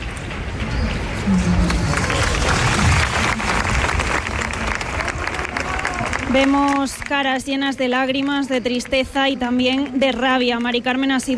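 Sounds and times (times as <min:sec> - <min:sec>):
crowd applause: 0:01.1 - 0:07.2
speech: 0:06.3 - 0:11.3.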